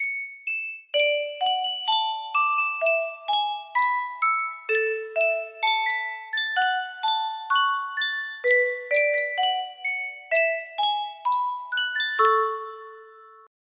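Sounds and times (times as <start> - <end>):
Sankyo custom tune music box: 0.0 - 13.5.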